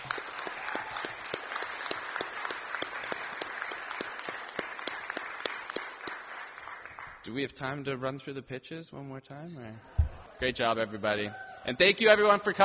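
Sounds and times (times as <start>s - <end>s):
audience applause: 0.0s - 7.2s
speech: 7.3s - 12.6s.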